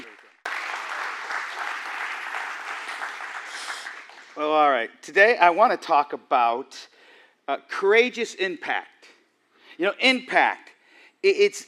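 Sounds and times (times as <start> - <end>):
audience applause: 0.0 - 4.4
speech: 4.4 - 6.9, 7.5 - 8.9, 9.8 - 11.6.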